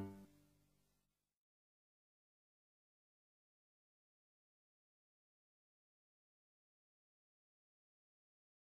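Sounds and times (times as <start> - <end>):
calm song: 0.0 - 0.4.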